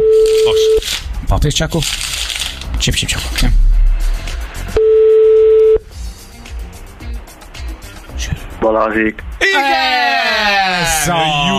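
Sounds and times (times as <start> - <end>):
telephone busy signal tone: 0.0 - 0.8, 4.8 - 5.8
speech: 1.3 - 3.6, 8.6 - 11.5.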